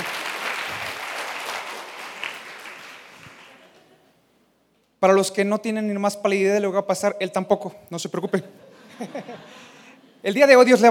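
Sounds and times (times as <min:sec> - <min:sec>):
audience applause: 0:00.0 - 0:03.8
laughter: 0:03.3 - 0:04.1, 0:08.6 - 0:10.2
speech: 0:05.0 - 0:10.9.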